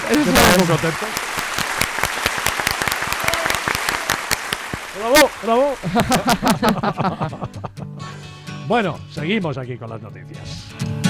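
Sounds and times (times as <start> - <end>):
lively applause: 0.0 - 6.7
speech: 0.1 - 1.4, 5.0 - 7.6, 8.7 - 11.0
laughter: 5.7 - 8.2.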